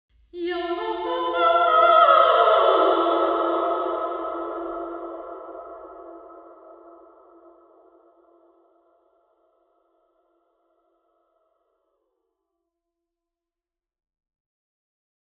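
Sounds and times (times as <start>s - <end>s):
choir singing at York Minster: 0.5s - 7.5s.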